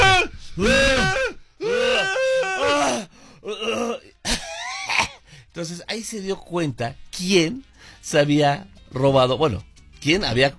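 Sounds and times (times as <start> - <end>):
speech: 0.6 - 0.9, 5.6 - 10.5
person choking on spicy food: 0.8 - 5.2
person coughing: 3.5 - 5.2.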